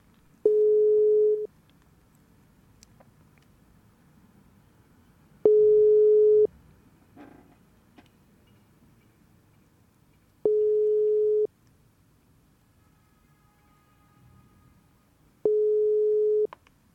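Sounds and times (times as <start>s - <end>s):
faint low hum: 0.0s - 16.9s
telephone busy signal while redialing a dropped call: 0.5s - 1.5s, 5.5s - 6.5s, 10.5s - 11.5s, 15.4s - 16.5s.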